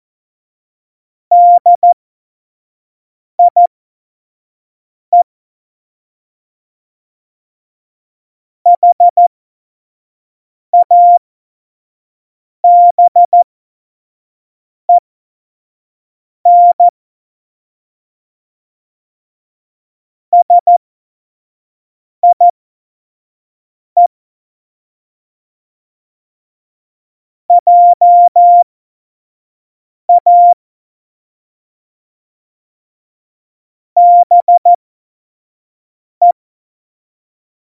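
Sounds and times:
CW Morse code beeps for a Morse course: 1.3 - 2.0, 3.4 - 3.7, 8.8 - 9.2, 10.8 - 11.2, 12.7 - 13.4, 16.5 - 16.9, 20.4 - 20.8, 22.2 - 22.5, 27.5 - 28.6, 30.1 - 30.6, 34.0 - 34.8.

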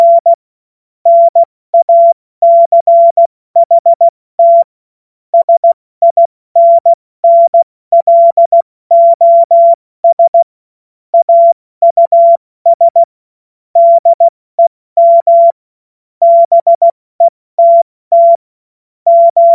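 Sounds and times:
CW Morse code beeps: 0.0 - 0.4, 1.1 - 4.7, 5.4 - 10.5, 11.2 - 13.1, 13.8 - 14.3, 15.0 - 15.6, 16.2 - 18.4, 19.1 - 19.5.

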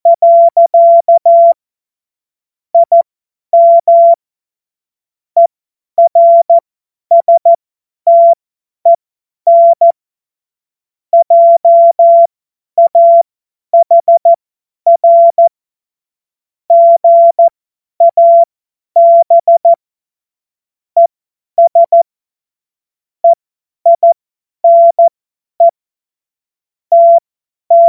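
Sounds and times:
CW Morse code beeps: 0.0 - 1.6, 2.8 - 3.0, 3.6 - 4.2, 5.4 - 7.5, 8.1 - 10.0, 11.2 - 13.2, 13.8 - 15.5, 16.7 - 19.8, 21.0 - 22.0, 23.2 - 25.7, 26.9 - 27.8.

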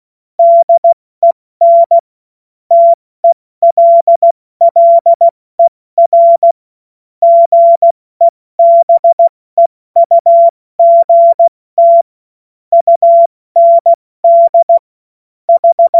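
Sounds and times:
CW Morse code beeps: 0.4 - 1.0, 1.6 - 2.0, 2.7 - 6.6, 7.2 - 8.0, 8.6 - 9.3, 10.0 - 12.1, 12.7 - 14.8, 15.5 - 15.9.

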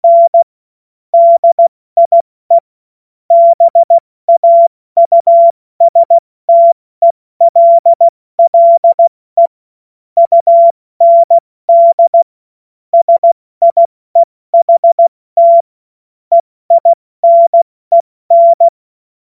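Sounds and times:
CW Morse code beeps: 0.0 - 0.5, 1.2 - 2.6, 3.3 - 9.5, 10.2 - 12.3, 13.0 - 15.7, 16.3 - 18.8.

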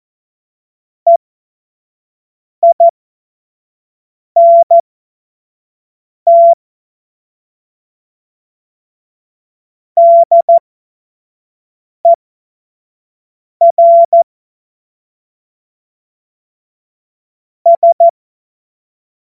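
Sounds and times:
CW Morse code beeps: 2.6 - 2.9, 4.4 - 4.8, 6.3 - 6.6, 10.0 - 10.6, 13.6 - 14.3, 17.7 - 18.2.

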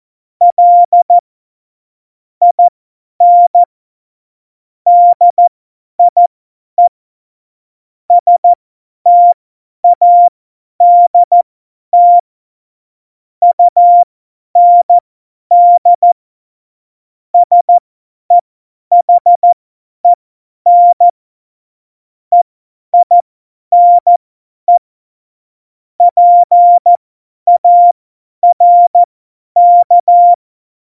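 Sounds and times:
CW Morse code beeps: 0.5 - 1.2, 2.4 - 3.7, 4.9 - 6.2, 8.1 - 11.4, 12.0 - 12.2, 13.4 - 16.2, 17.4 - 19.6, 20.7 - 21.1, 23.0 - 23.2, 23.8 - 24.8, 26.0 - 30.8.

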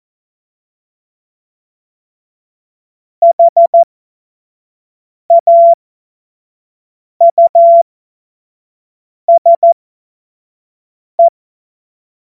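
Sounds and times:
Morse code tones: 3.2 - 3.8, 5.3 - 5.8, 7.3 - 7.8, 9.3 - 9.8.

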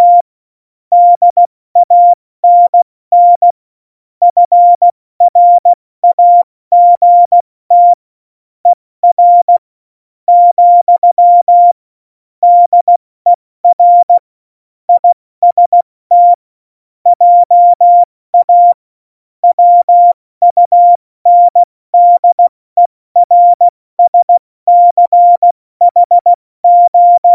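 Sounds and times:
CW Morse code beeps: 0.0 - 0.2, 0.9 - 3.5, 4.2 - 8.0, 9.0 - 9.6, 10.3 - 11.8, 12.4 - 13.0, 13.6 - 14.2, 15.0 - 16.4, 17.1 - 18.8, 19.4 - 22.5, 23.2 - 27.3.

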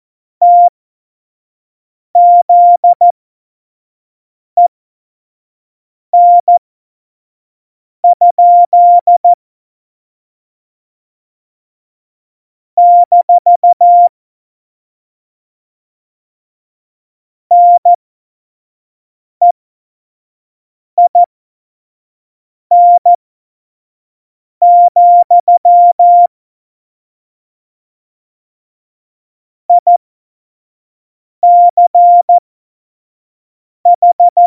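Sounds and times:
morse code beeps at tempo 25: 0.4 - 0.7, 2.2 - 3.1, 6.2 - 6.6, 8.0 - 9.4, 12.8 - 14.1, 17.5 - 18.0, 21.1 - 21.3, 22.7 - 23.1, 24.6 - 26.3, 29.7 - 30.0, 31.4 - 32.4, 33.9 - 34.4.

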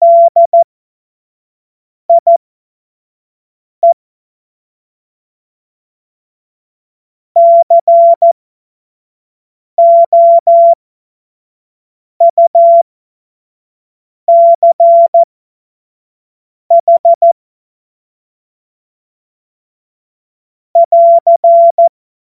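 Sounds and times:
CW Morse code beeps: 0.0 - 0.6, 2.1 - 2.4, 7.4 - 8.4, 9.8 - 10.8, 12.2 - 12.8, 14.3 - 15.3, 16.7 - 17.4, 20.8 - 21.9.

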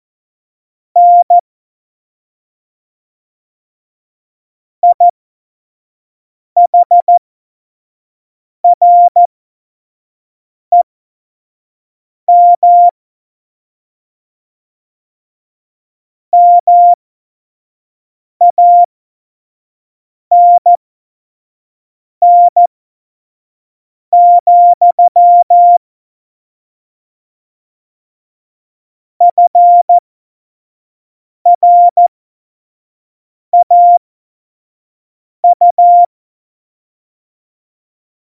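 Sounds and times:
CW Morse code at tempo 70: 1.0 - 1.4, 4.8 - 5.1, 6.7 - 7.2, 8.8 - 9.3, 12.3 - 12.9, 16.4 - 17.0, 18.4 - 18.9, 20.3 - 20.7, 22.2 - 22.7, 24.2 - 25.8, 29.2 - 30.0, 31.5 - 32.1, 33.6 - 34.0, 35.4 - 36.1.

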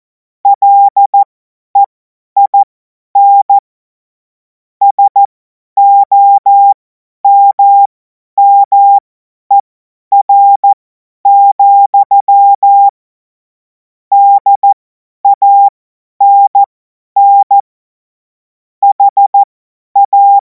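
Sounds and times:
morse code CW: 0.6 - 3.6, 4.8 - 9.6, 10.2 - 13.0, 14.1 - 14.7, 15.3 - 17.6, 18.8 - 20.4.

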